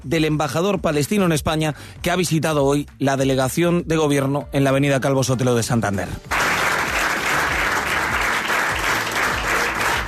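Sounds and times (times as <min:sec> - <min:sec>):
speech: 0:00.0 - 0:06.4
sustained applause from a packed hall: 0:06.3 - 0:10.0.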